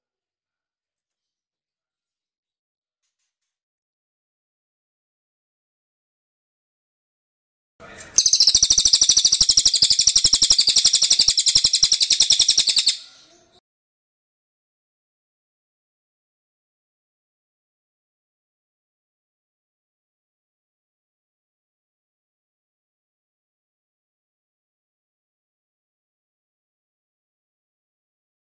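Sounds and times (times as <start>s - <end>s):
bird singing a fast high-pitched chattering song: 7.8s - 13.6s.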